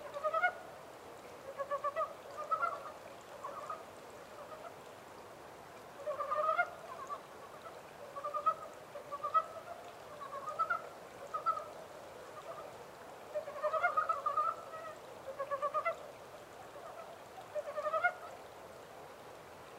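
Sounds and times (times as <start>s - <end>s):
Japanese mountain brown frog calling: 0.0s - 0.6s, 1.4s - 4.8s, 6.0s - 11.8s, 13.3s - 16.0s, 16.7s - 18.3s
faint steady hiss: 0.0s - 19.7s.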